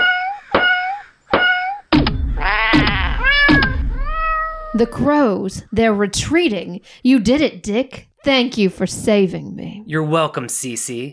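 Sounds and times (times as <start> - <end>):
cat meows and yowls: 0.0 - 5.0
smacking a jammed cartridge into a gun: 1.3 - 4.2
speech: 4.8 - 11.1.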